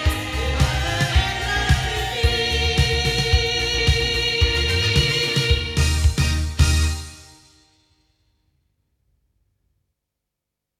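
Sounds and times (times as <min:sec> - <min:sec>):
loudspeakers: 0:00.0 - 0:07.1.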